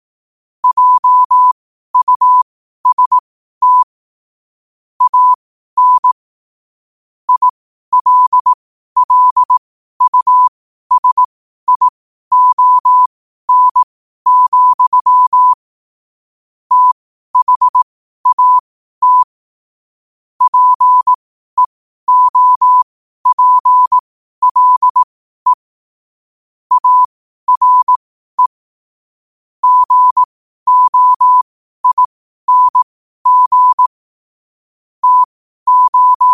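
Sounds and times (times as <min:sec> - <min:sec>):
morse code at 5 wpm: 0:00.6 - 0:03.9, 0:05.0 - 0:06.2, 0:07.3 - 0:15.6, 0:16.7 - 0:19.3, 0:20.4 - 0:25.7, 0:26.7 - 0:28.6, 0:29.6 - 0:34.0, 0:35.0 - 0:36.3.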